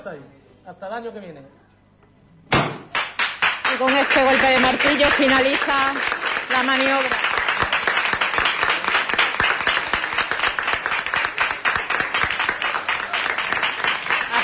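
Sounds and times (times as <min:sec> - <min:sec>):
speech: 0:00.0 - 0:01.6, 0:03.8 - 0:07.3
crowd applause: 0:03.0 - 0:14.4.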